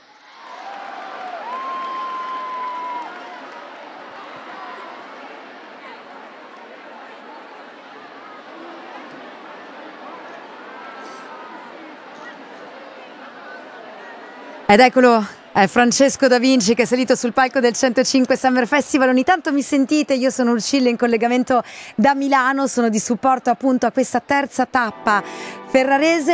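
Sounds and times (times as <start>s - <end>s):
audience applauding and cheering for performer: 0.0s - 11.9s, 24.9s - 26.3s
speech: 14.7s - 26.3s.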